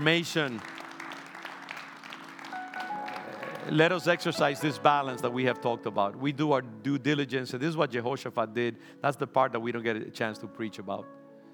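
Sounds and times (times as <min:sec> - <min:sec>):
speech: 0:00.0 - 0:00.8, 0:03.6 - 0:11.2
audience applause: 0:00.0 - 0:04.0.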